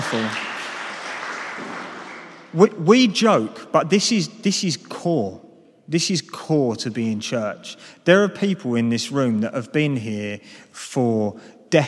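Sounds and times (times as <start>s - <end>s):
audience applause: 0.0s - 2.6s
speech: 0.1s - 0.4s, 2.5s - 11.8s.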